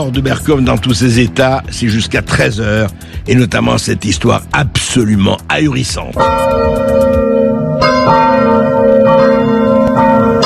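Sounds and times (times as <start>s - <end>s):
speech: 0.0s - 7.3s
church carillon bells ringing: 6.2s - 10.4s.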